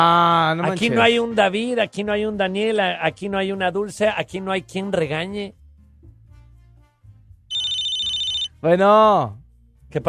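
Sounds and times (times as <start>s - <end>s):
speech: 0.0s - 5.6s, 8.6s - 10.0s
electronic telephone ringtone for an incoming call: 7.5s - 8.5s.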